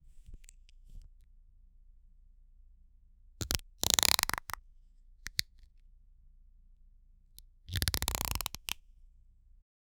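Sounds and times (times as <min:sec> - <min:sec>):
tightening grip on a plastic toy: 0:03.4 - 0:04.6, 0:07.7 - 0:08.8.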